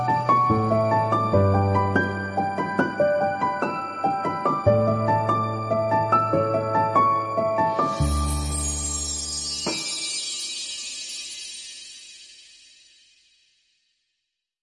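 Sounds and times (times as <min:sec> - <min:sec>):
romantic sentimental music: 0:00.0 - 0:11.7.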